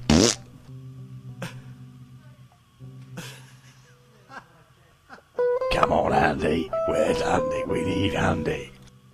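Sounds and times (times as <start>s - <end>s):
long low buzzing fart: 0.0s - 0.5s
speech: 5.9s - 8.7s.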